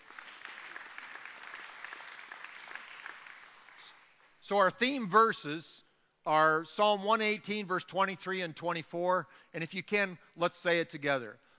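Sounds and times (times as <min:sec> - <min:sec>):
audience clapping: 0:00.0 - 0:04.3
speech: 0:04.5 - 0:11.4.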